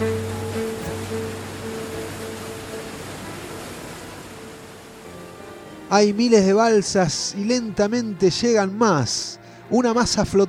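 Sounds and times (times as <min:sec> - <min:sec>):
rushing water waves: 0:00.0 - 0:07.9
speech: 0:05.9 - 0:10.4.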